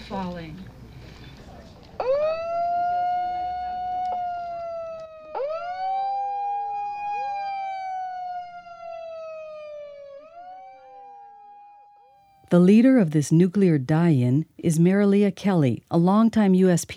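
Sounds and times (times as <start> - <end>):
speech: 0.1 - 0.8, 12.5 - 16.9
air raid siren: 2.0 - 12.5.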